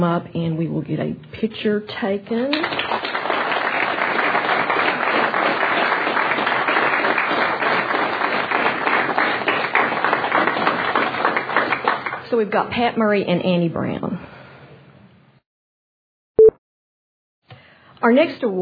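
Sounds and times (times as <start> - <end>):
speech: 0.0 - 3.2, 12.3 - 14.3, 18.0 - 18.6
audience applause: 2.6 - 12.2.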